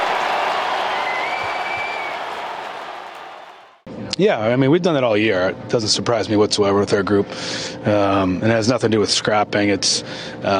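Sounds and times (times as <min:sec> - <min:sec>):
large arena crowd applauding: 0:00.0 - 0:03.8
speech: 0:04.2 - 0:10.5.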